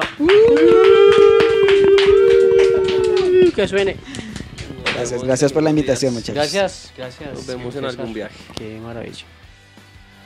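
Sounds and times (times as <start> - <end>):
audience applause: 0.0 - 5.1
speech: 0.2 - 0.8, 3.6 - 4.3, 5.0 - 9.4.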